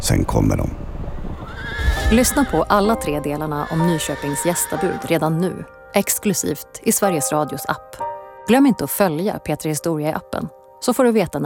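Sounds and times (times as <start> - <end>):
speech: 0.1 - 0.8, 2.1 - 11.4
horse whinnying: 1.4 - 5.2.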